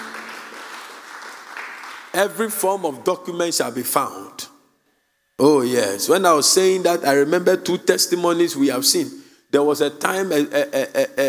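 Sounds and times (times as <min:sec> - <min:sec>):
audience clapping: 0:00.0 - 0:02.6
speech: 0:02.2 - 0:04.5, 0:05.4 - 0:11.2.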